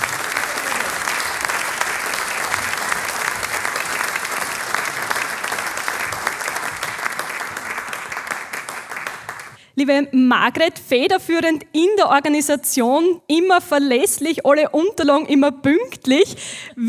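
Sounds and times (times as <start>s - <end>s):
applause: 0.0s - 9.6s
speech: 9.8s - 16.8s.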